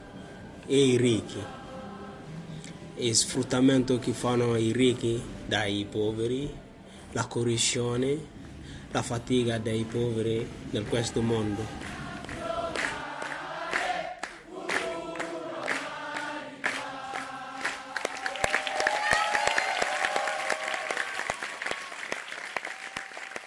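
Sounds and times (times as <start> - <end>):
speech: 0.7 - 1.6, 3.0 - 11.9
audience applause after theatre performance: 11.8 - 23.4
indistinct voices and cheers: 18.2 - 21.6.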